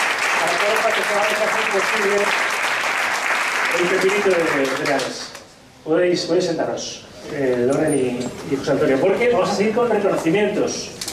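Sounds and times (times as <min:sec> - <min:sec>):
audience applause: 0:00.0 - 0:05.4
speech: 0:00.6 - 0:02.6, 0:03.7 - 0:11.0.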